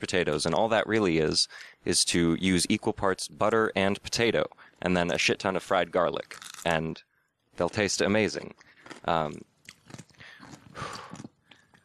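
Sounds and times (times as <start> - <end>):
speech: 0.0 - 10.0
person biting and chewing pickles: 6.2 - 6.8, 8.4 - 11.8.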